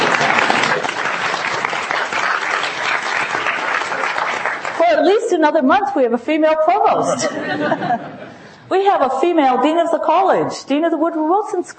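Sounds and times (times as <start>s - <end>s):
audience applause: 0.0s - 5.0s
speech: 5.4s - 11.7s
laughter: 7.0s - 8.6s.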